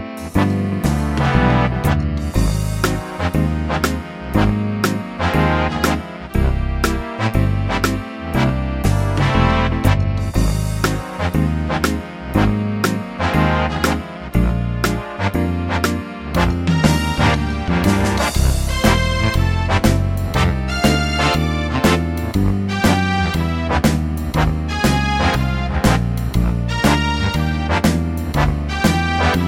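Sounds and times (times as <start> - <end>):
big band playing: 0.0 - 29.4.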